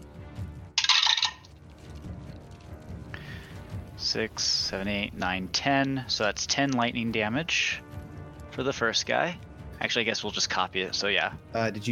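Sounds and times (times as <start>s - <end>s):
rolling four six-sided dice: 0.8s - 1.5s
speech: 4.0s - 7.8s, 8.6s - 11.9s.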